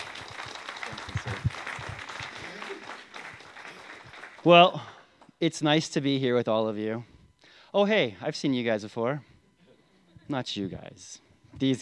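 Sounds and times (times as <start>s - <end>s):
church audience applause welcoming speakers to the pulpit: 0.0s - 5.0s
speech: 4.4s - 7.1s, 7.7s - 9.3s, 10.3s - 11.8s.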